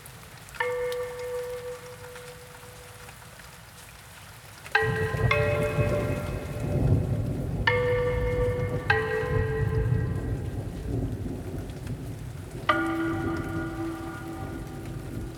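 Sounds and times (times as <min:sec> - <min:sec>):
Asian bells ringing: 0:00.6 - 0:03.0, 0:04.8 - 0:11.1, 0:12.7 - 0:15.3
thunderstorm: 0:04.8 - 0:15.3.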